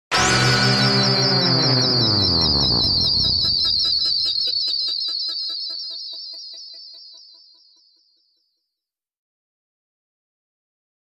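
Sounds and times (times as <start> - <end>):
gritty stinger: 0.1 - 4.6.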